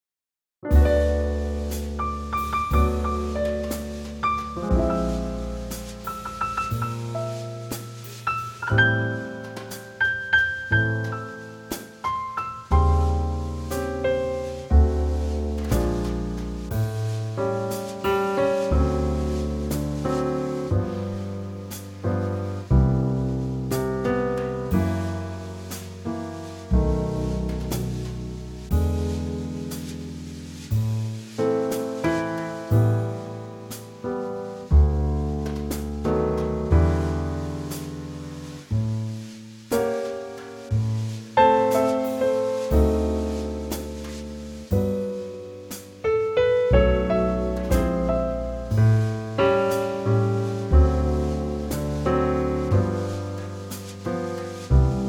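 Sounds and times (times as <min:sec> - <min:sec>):
music trio in G: 0:00.7 - 0:55.0.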